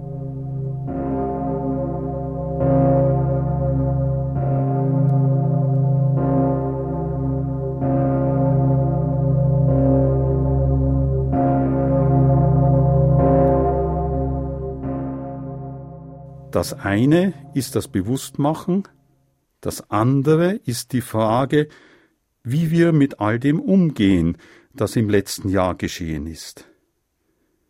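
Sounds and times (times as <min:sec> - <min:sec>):
deep church bell striking: 0:00.0 - 0:18.7
speech: 0:16.6 - 0:19.0, 0:19.6 - 0:26.7.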